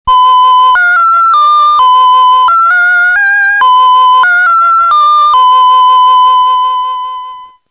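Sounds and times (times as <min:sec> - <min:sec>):
Casio VL1 synthesizer melody: 0:00.1 - 0:07.6.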